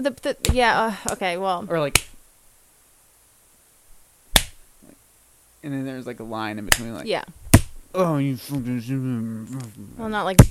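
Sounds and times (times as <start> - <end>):
speech: 0.0 - 2.1, 5.6 - 10.4
hand clap: 4.4 - 4.6.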